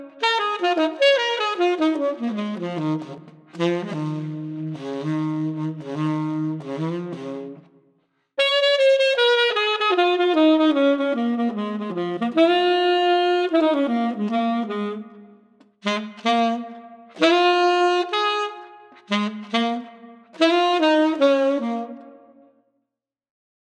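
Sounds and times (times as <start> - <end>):
mellow street tenor saxophone: 0.0 - 7.8, 8.4 - 22.5.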